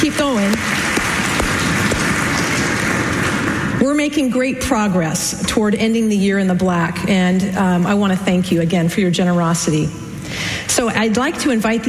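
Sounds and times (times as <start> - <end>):
congregation clapping at a church service in thanks for donations: 0.0 - 3.8
speech: 4.0 - 11.8.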